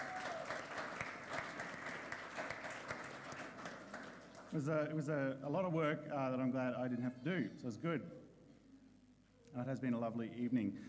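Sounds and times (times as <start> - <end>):
round of applause from a crowd: 0.0 - 4.5
speech: 4.5 - 8.2, 9.5 - 10.8.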